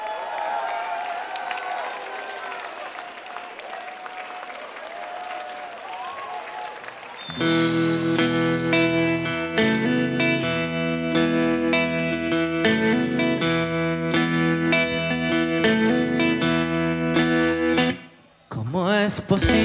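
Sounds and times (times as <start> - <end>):
audience applause on a music program: 0.0 - 7.9
loud musical section: 7.3 - 18.1, 19.2 - 19.6.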